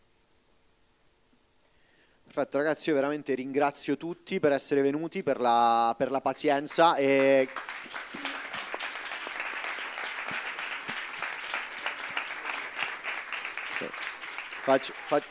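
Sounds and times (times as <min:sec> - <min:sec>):
speech: 0:02.4 - 0:08.2, 0:14.7 - 0:15.2
audience applause: 0:06.7 - 0:15.2.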